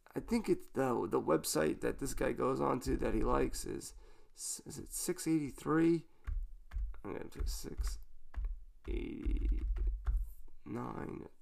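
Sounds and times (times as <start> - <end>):
speech: 0.2 - 6.1, 7.0 - 8.0, 8.8 - 9.9, 10.7 - 11.4
typing on a computer keyboard: 6.2 - 10.6.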